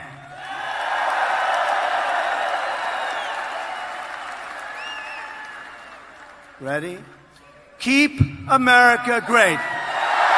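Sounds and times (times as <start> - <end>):
large crowd applause: 0.3 - 7.2, 9.9 - 10.3
crowd cheering: 0.3 - 7.8, 9.3 - 10.3
high whistles: 2.9 - 6.4
speech: 6.6 - 7.2, 7.8 - 9.8.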